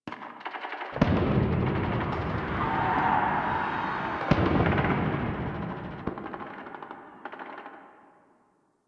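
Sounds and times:
distant explosions: 0:01.0 - 0:07.2.

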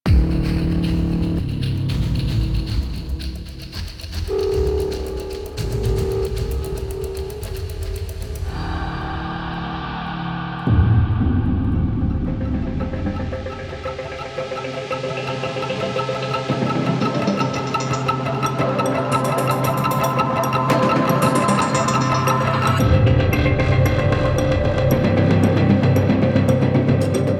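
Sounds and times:
cinematic music: 0:00.1 - 0:27.3.

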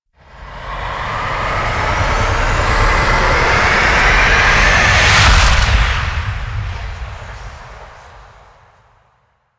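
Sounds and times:
vehicles departing: 0:00.2 - 0:06.5.

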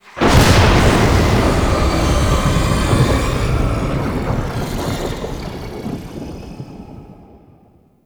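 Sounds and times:
exterior thunder clap: 0:00.0 - 0:08.0.

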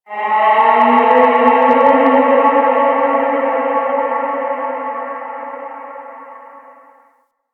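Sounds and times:
landscape ambient texture: 0:00.0 - 0:07.1.

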